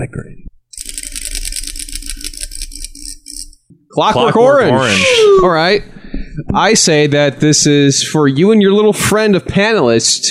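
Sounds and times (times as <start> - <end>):
prize wheel being spun, rattling clicks: 0.7 - 3.6
speech: 4.0 - 10.3.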